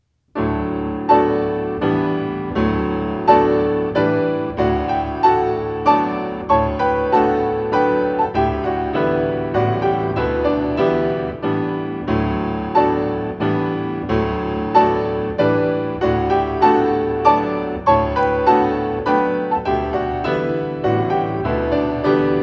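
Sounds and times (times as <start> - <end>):
piano playing: 0.4 - 22.4.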